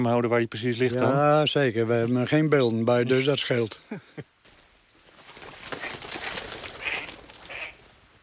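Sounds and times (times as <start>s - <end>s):
speech: 0.0s - 4.3s
ducks calling at a duck decoy in Friesland: 5.6s - 7.9s.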